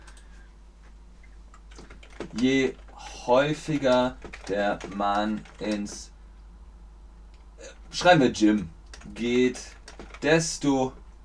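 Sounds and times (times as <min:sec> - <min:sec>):
faint keyboard typing: 0:00.0 - 0:00.3, 0:01.5 - 0:06.1, 0:07.3 - 0:11.0
steady low hum: 0:00.0 - 0:11.2
speech: 0:02.3 - 0:06.1, 0:07.9 - 0:11.0.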